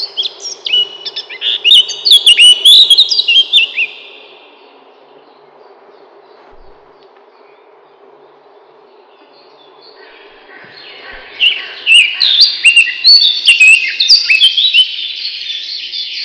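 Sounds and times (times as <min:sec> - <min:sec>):
Eurasian blackcap song: 0:00.0 - 0:16.2.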